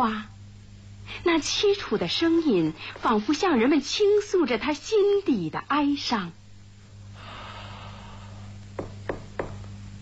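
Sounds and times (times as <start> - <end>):
speech: 0.0 - 0.3, 1.1 - 6.4
low steady hum: 0.0 - 10.0
knocking on a door: 8.8 - 9.6.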